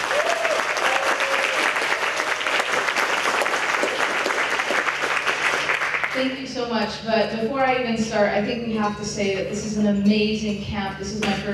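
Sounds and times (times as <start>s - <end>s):
audience applause: 0.0s - 6.2s
speech: 6.2s - 11.5s.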